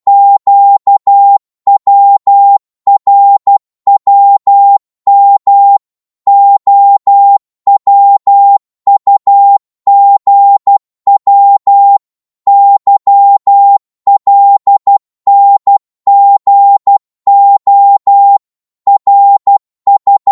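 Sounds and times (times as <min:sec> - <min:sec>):
Morse code beeps: 0:00.1 - 0:20.2.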